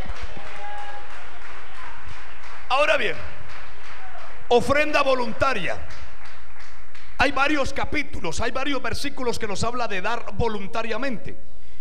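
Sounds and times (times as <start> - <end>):
people clapping: 0.0 - 8.7
speech: 2.7 - 3.3, 4.5 - 6.0, 7.2 - 11.5.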